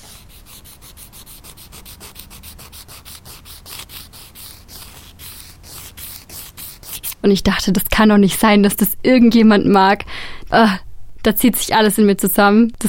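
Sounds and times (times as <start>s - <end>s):
nail file scraping: 0.0s - 7.3s
speech: 7.2s - 12.8s.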